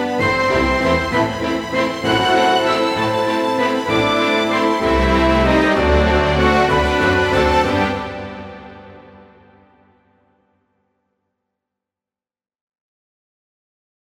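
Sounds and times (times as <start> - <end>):
orchestra: 0.0 - 9.8.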